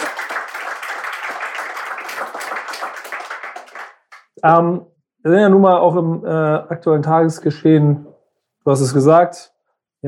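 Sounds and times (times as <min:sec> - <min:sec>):
crowd applauding: 0:00.0 - 0:04.3
speech: 0:02.2 - 0:03.4, 0:04.4 - 0:10.0.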